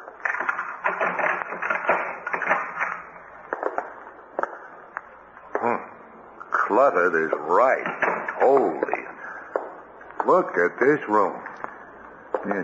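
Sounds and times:
door being unlocked and opened: 0.3s - 3.1s, 7.8s - 8.7s
speech: 6.8s - 9.1s, 10.3s - 11.5s, 12.5s - 12.6s.

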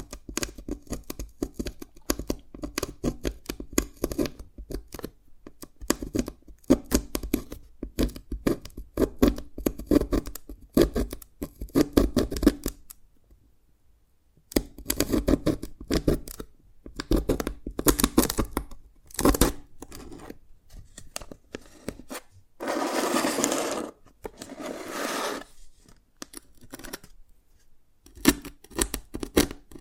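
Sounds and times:
Dalgona candy being tapped and cracked: 0.0s - 12.9s, 14.5s - 20.0s, 28.0s - 29.7s
scraping and rustling: 19.9s - 26.0s.

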